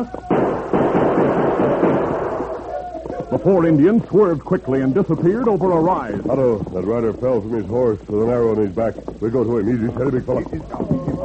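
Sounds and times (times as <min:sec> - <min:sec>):
speech: 0:00.0 - 0:00.3, 0:03.3 - 0:10.9
gunshots: 0:00.3 - 0:02.9.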